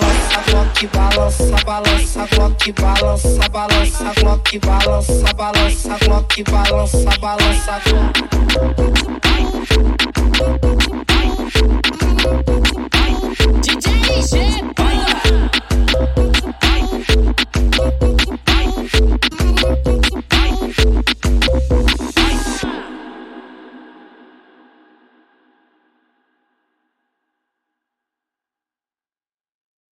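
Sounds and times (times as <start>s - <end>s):
electro funk music: 0.0s - 22.7s.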